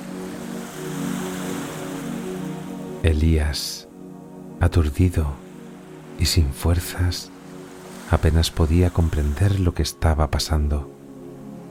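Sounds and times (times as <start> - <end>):
rough stormy sea waves: 0.0 - 3.0, 5.2 - 10.1
speech: 3.0 - 3.9, 4.6 - 5.4, 6.2 - 7.3, 8.1 - 10.9.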